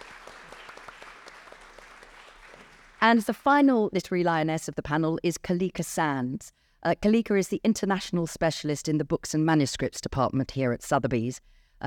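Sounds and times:
audience applause at a literary panel at Sotheby's: 0.0 - 3.4
speech: 3.0 - 11.8.

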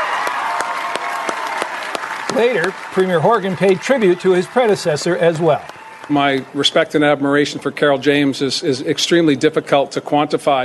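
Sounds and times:
crowd cheering and applauding: 0.0 - 7.3
speech: 2.4 - 10.6.

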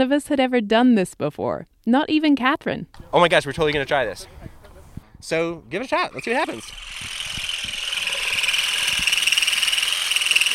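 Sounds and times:
speech: 0.0 - 4.4, 5.2 - 7.2
vibrating olive harvesting rake combing branches: 6.1 - 10.5.

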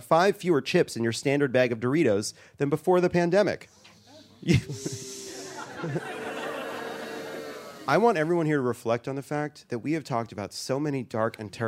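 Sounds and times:
speech: 0.1 - 3.8, 4.4 - 5.1, 5.8 - 6.1, 7.9 - 11.6
crowd hissing: 3.7 - 8.1
murmuring voices: 4.0 - 8.0
laughter: 4.4 - 8.1
crowd booing: 4.6 - 8.1.

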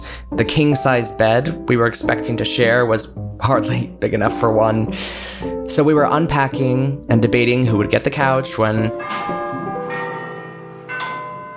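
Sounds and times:
speech: 0.3 - 9.5
deep clock tower bell tolling: 7.8 - 11.5.

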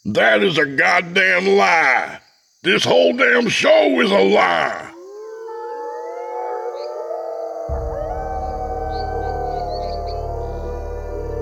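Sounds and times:
speech: 0.0 - 4.9
many creatures howling in a forest: 4.0 - 11.4
deep low rumble: 7.7 - 11.4.

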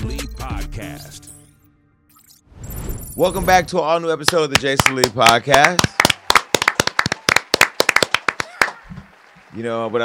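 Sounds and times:
speech: 3.2 - 5.9, 9.5 - 10.0
artificial audience clapping sound effect: 4.2 - 10.0.

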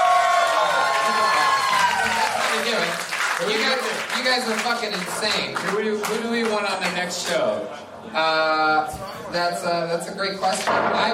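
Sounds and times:
audience applause and cheering: 0.0 - 6.2
speech: 3.4 - 11.1.

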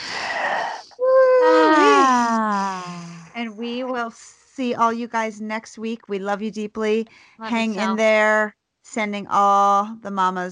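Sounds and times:
group of people taking a collective breath: 0.0 - 1.0, 2.6 - 3.4
group voiced exhale with overlapping sighing tones: 0.0 - 3.3
speech: 4.0 - 10.5.

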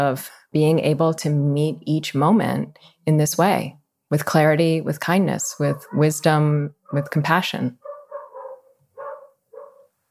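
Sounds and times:
speech: 0.0 - 7.8
dogs of Bushwick barking: 5.6 - 6.2, 7.8 - 10.0.

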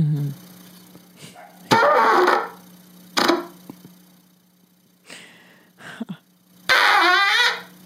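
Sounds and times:
buzzy brass blats into a trumpet: 1.7 - 3.6, 6.6 - 7.8.

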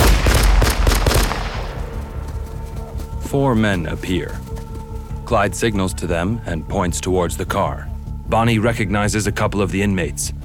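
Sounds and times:
gunshots fired: 0.0 - 2.3
speech: 3.3 - 4.7, 5.3 - 10.4.

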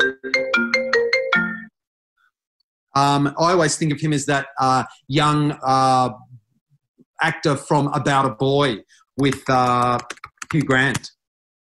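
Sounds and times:
mobile phone ringtone: 0.0 - 1.8
speech: 3.0 - 6.3, 7.2 - 11.2.

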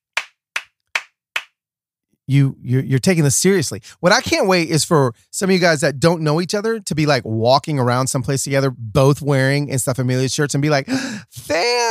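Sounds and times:
slow deliberate hand claps: 0.0 - 1.6
speech: 2.3 - 11.9.

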